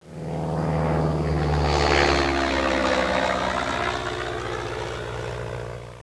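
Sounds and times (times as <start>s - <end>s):
plane: 0.0s - 6.0s.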